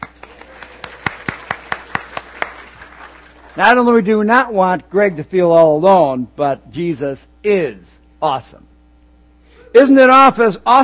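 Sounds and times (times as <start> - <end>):
audience clapping: 0.0 - 3.8
speech: 3.6 - 8.7, 9.7 - 10.8.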